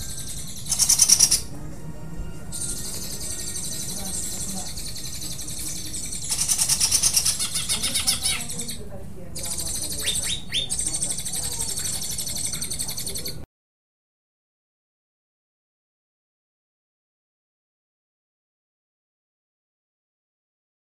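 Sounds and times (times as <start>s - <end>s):
Greater green leafbird song with harsh buzzy rattles and chattering bursts: 0.0s - 1.5s, 2.5s - 8.8s, 9.4s - 13.4s.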